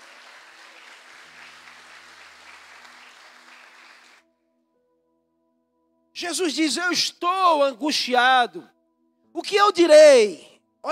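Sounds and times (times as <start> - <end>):
audience applauding: 0.0 - 4.2
speech: 6.2 - 8.7, 9.4 - 10.8.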